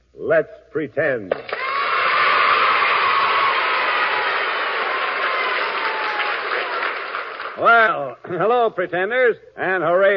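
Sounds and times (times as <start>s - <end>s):
speech: 0.3s - 1.6s, 7.6s - 10.1s
studio audience applause welcoming a radio show: 1.5s - 8.0s.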